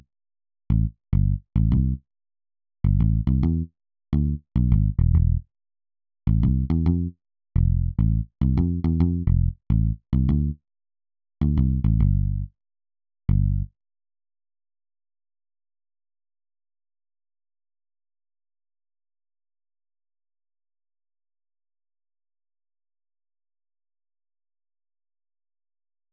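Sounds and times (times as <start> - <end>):
bass: 0.7 - 2.0, 2.8 - 5.5, 6.2 - 10.6, 11.4 - 12.6, 13.3 - 13.8.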